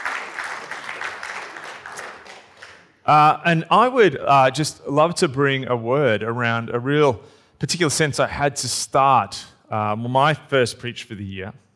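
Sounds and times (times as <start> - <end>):
crowd applause: 0.0 - 3.0
speech: 3.1 - 11.6.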